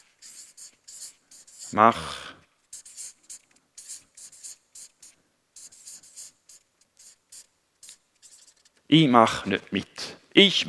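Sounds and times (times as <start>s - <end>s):
pen scratching on paper during handwriting: 0.0s - 2.0s, 2.6s - 8.8s
speech: 1.7s - 2.2s, 8.9s - 10.6s.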